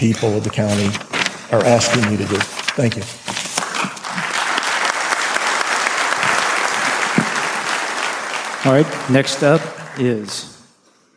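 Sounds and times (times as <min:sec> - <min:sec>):
speech: 0:00.0 - 0:03.3, 0:08.6 - 0:10.6
audience clapping at a meeting: 0:03.5 - 0:10.8.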